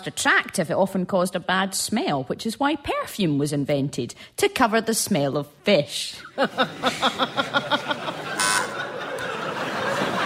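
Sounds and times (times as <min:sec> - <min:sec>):
speech: 0:00.0 - 0:07.8
laughter: 0:06.2 - 0:10.2
quiz show buzzer beeps: 0:08.4 - 0:08.8.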